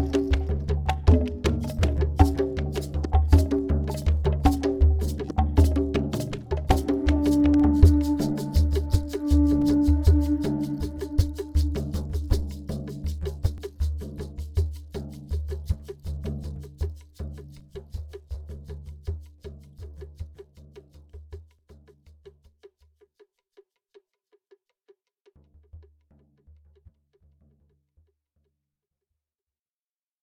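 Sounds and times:
instrumental music: 0.0s - 17.0s.

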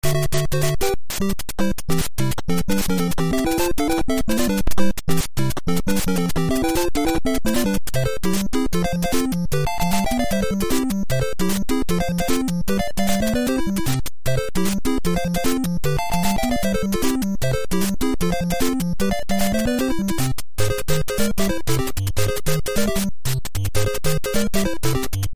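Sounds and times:
fast overworld game music: 0.0s - 25.3s.

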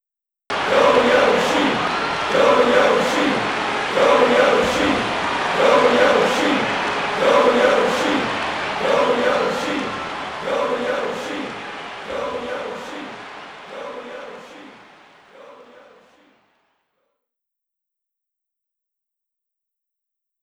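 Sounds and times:
crowd chanting: 0.5s - 16.6s.

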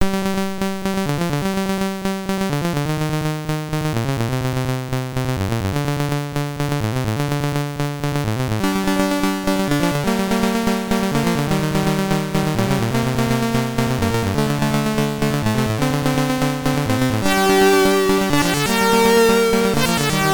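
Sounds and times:
SID chip loader music in stereo: 0.1s - 20.3s.

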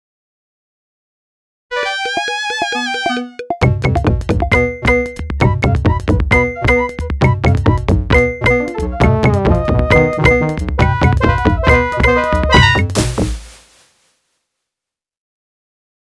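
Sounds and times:
jungle beat: 2.6s - 13.8s.

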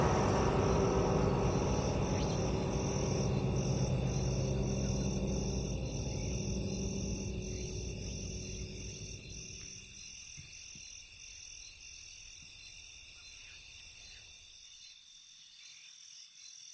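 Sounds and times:
night ambience: 0.0s - 10.2s.

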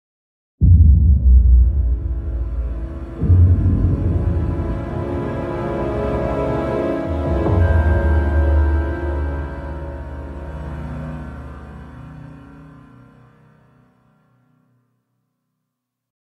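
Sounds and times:
suspense theme music: 0.6s - 13.0s.

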